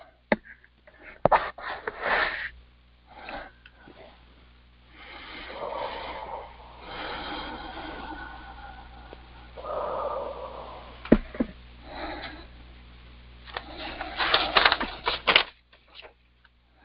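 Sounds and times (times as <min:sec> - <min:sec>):
deep breaths during a guided healing session: 0:01.7 - 0:12.8, 0:13.5 - 0:15.1.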